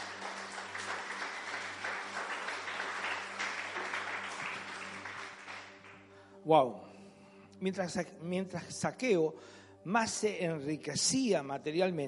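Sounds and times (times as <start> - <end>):
crowd applause: 0.0 - 6.0
speech: 6.4 - 6.9, 7.6 - 12.0.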